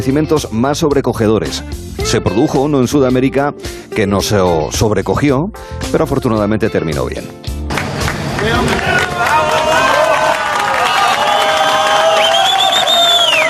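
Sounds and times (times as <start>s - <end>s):
speech: 0.0s - 7.5s, 8.4s - 9.2s
crowd applauding and cheering at a mine rescue: 7.7s - 13.4s
people shouting excitedly: 8.4s - 12.6s
piercing whistles: 11.1s - 13.4s.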